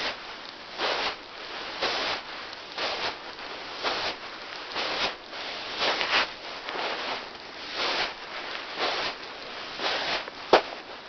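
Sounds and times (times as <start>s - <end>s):
footsteps on sand: 0.0s - 11.0s.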